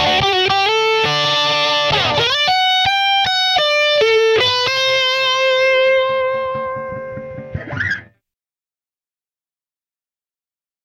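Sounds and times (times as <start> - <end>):
guitar solo through Eventide Instant Phaser MkII: 0.0 - 8.1.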